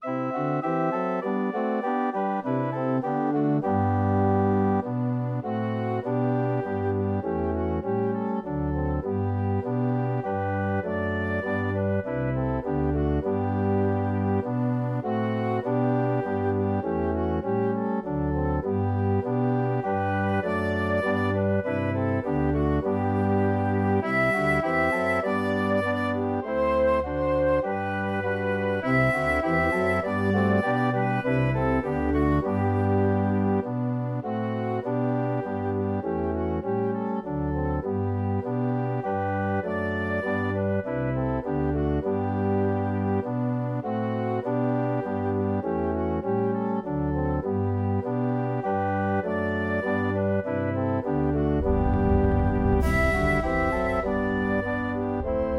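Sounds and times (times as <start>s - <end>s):
flute melody: 0.0s - 55.5s.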